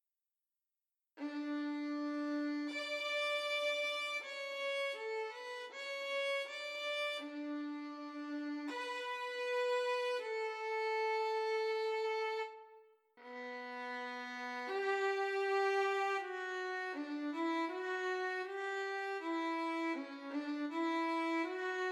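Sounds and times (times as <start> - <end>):
violin: 1.2 - 21.8.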